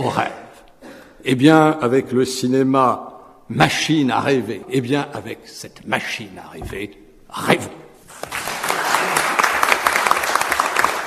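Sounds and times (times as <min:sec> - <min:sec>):
speech: 0:00.0 - 0:00.4, 0:01.2 - 0:08.4
audience applauding: 0:08.1 - 0:11.0.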